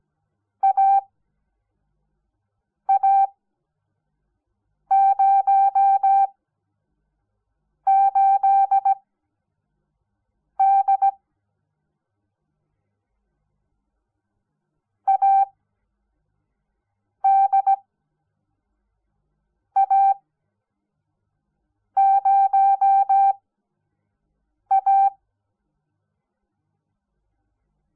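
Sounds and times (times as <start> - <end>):
morse code beeps: 0.6 - 1.1, 2.9 - 3.3, 4.9 - 6.3, 7.9 - 9.0, 10.6 - 11.1, 15.1 - 15.5, 17.3 - 17.8, 19.8 - 20.2, 22.0 - 23.4, 24.7 - 25.2.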